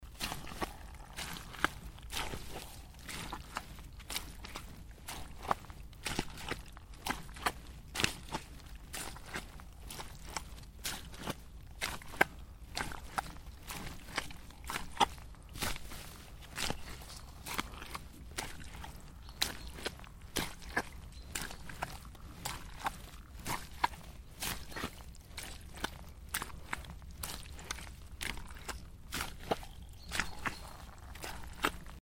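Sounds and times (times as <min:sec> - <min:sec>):
footsteps in a swamp: 0:00.0 - 0:32.0.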